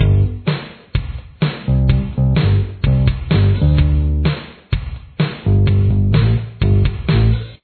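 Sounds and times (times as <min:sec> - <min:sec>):
verse bass line: 0:00.0 - 0:00.5, 0:01.7 - 0:04.3, 0:05.4 - 0:07.6.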